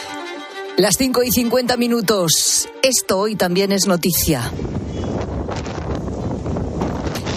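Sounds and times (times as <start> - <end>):
speech: 0.8 - 4.9
strong wind from storm Carlota across the northwest of the Iberian peninsula: 4.3 - 7.3.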